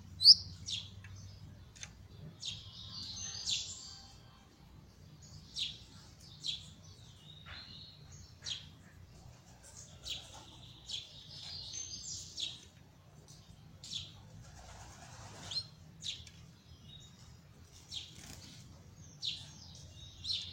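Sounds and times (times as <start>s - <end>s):
copper-coloured Belgian canary singing trills and rattling rolls: 0.0s - 4.4s, 5.2s - 20.5s.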